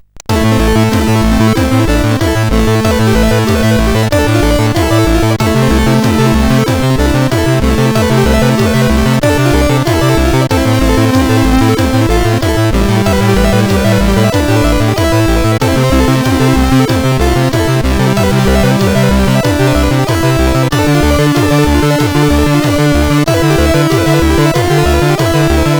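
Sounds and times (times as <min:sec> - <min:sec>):
chiptune intro music on SID CSG8580R5 chip: 0:00.2 - 0:25.7.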